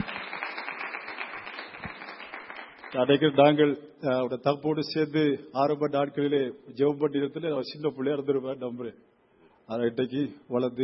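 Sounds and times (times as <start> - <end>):
audience clapping to welcome a guest: 0.0 - 3.4
speech: 2.9 - 9.1, 9.7 - 10.8.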